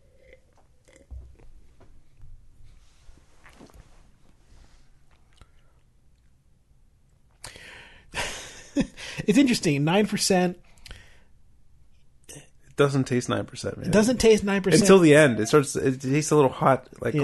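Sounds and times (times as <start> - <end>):
person sipping beer: 0.0 - 1.6
speech: 8.8 - 10.6, 12.8 - 17.2.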